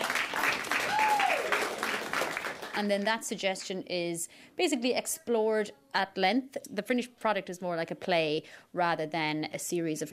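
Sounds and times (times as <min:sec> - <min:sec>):
audience applause at an improvised comedy show: 0:00.0 - 0:02.8
speech: 0:02.8 - 0:10.1.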